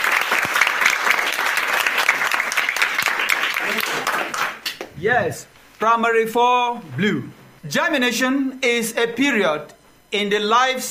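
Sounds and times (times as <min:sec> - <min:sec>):
audience applause: 0:00.0 - 0:04.8
speech: 0:05.0 - 0:10.9.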